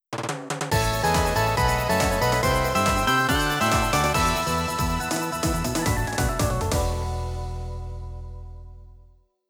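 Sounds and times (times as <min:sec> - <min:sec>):
victory jingle: 0:00.7 - 0:07.3.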